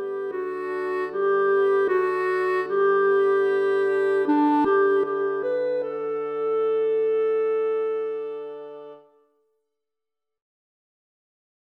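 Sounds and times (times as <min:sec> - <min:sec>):
clarinet: 0:00.0 - 0:09.2.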